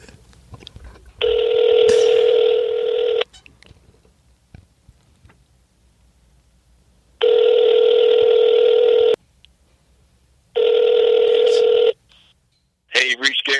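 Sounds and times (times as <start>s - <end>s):
telephone call ringing tones: 1.2s - 3.2s, 7.2s - 9.2s, 10.6s - 12.0s.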